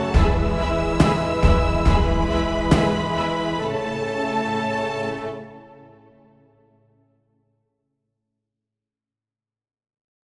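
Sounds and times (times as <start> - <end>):
background music: 0.0 - 6.6.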